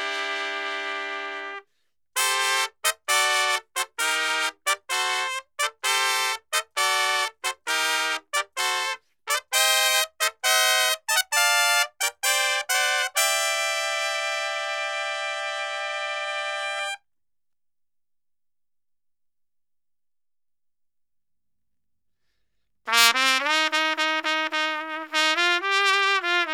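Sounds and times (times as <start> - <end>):
trumpet: 0.0 - 17.0, 22.9 - 26.5.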